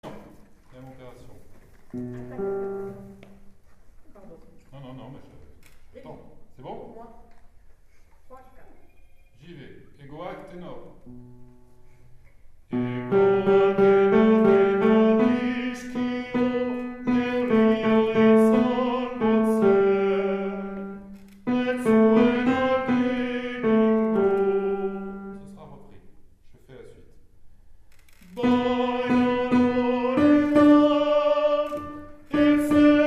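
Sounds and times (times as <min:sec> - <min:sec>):
tenor voices singing: 0:12.7 - 0:25.4, 0:28.2 - 0:33.0.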